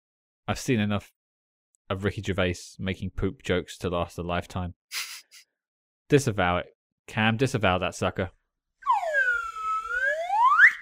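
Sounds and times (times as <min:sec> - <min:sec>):
speech: 0:00.5 - 0:01.2, 0:01.9 - 0:05.1, 0:06.1 - 0:08.4
slide whistle: 0:08.8 - 0:10.8.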